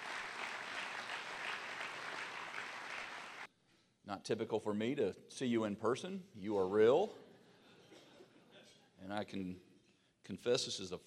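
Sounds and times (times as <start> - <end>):
audience applause: 0.0 - 3.5
speech: 4.1 - 7.2, 9.0 - 11.0.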